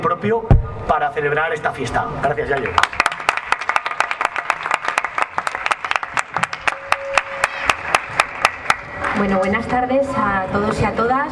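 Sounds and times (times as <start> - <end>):
speech: 0.1 - 3.0, 9.2 - 11.3
audience applause welcoming a speaker at an anniversary celebration in Zaragoza: 2.5 - 9.3.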